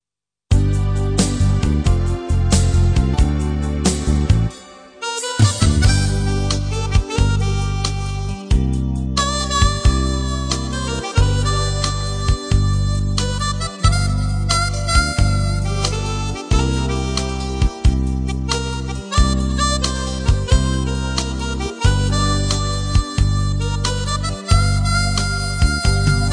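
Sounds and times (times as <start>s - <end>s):
blues music: 0.5s - 26.3s.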